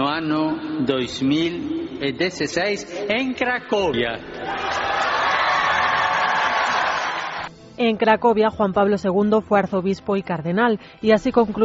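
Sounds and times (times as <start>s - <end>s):
speech: 0.2s - 4.9s, 7.8s - 11.6s
crowd shouting with joy: 4.4s - 7.5s.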